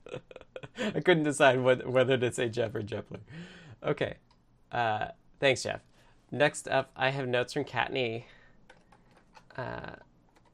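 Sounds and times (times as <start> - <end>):
speech: 0.8 - 8.4, 9.6 - 10.1
faint typing on a computer keyboard: 8.7 - 10.5.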